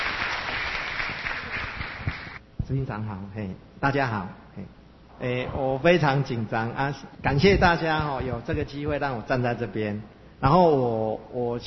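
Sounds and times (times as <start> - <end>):
audience applause welcoming guests: 0.0 - 2.4
speech: 2.7 - 11.6.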